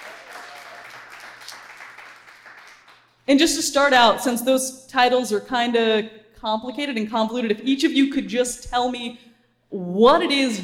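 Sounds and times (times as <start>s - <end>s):
audience applause: 0.0s - 3.0s
speech: 3.3s - 10.6s.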